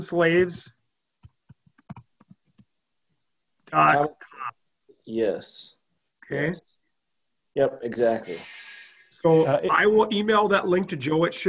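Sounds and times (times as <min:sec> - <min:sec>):
speech: 0:00.0 - 0:00.8, 0:03.7 - 0:06.7, 0:07.6 - 0:11.4
typing on a computer keyboard: 0:01.2 - 0:02.7.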